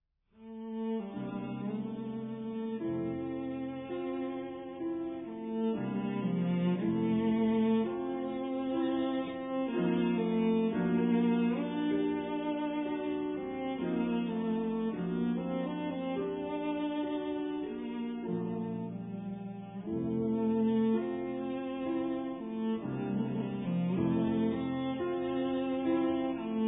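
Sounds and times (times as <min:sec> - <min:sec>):
cello: 0:00.4 - 0:26.6
piano: 0:00.4 - 0:26.6.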